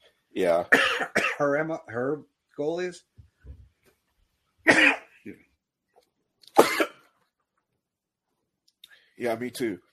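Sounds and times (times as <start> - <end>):
speech: 0.4 - 3.1, 4.7 - 5.5, 9.2 - 9.9
person sneezing: 4.6 - 5.2, 6.5 - 7.1.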